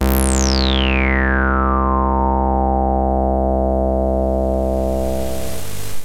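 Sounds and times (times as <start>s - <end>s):
303 filter synth bass, Transwaves: 0.0s - 6.0s.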